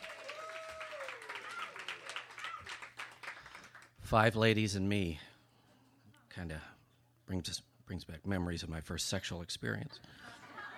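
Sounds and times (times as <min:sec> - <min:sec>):
audience applause: 0:00.0 - 0:04.0
speech: 0:04.1 - 0:05.3, 0:06.4 - 0:06.7, 0:07.3 - 0:10.4.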